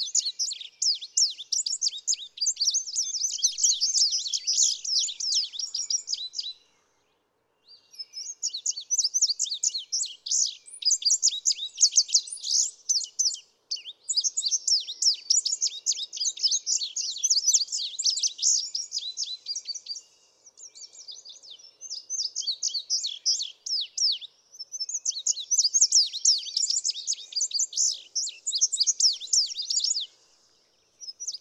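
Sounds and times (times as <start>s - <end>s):
Indigo Bunting singing: 0.0s - 31.4s.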